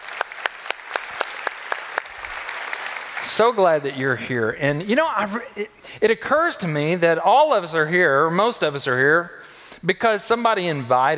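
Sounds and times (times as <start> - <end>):
church congregation applauding first-time visitors: 0.0 - 4.2
speech: 3.2 - 11.1.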